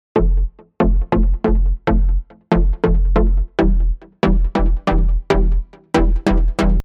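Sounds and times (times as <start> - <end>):
bass: 0.2 - 6.8.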